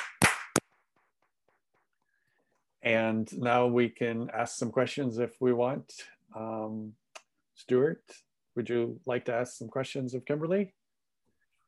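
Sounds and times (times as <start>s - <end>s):
hand claps for video sync: 0.0s - 0.8s
speech: 2.8s - 7.0s, 7.6s - 10.8s.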